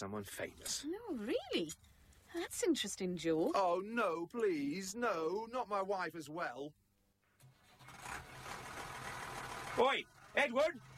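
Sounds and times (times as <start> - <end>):
speech: 0.0 - 6.8, 9.8 - 10.9
engine rumbling: 7.4 - 10.9.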